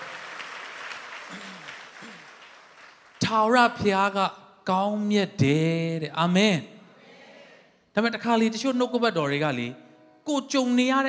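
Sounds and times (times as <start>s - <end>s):
church congregation clapping in praise during worship: 0.0s - 3.8s
speech: 3.3s - 6.7s, 8.0s - 11.0s.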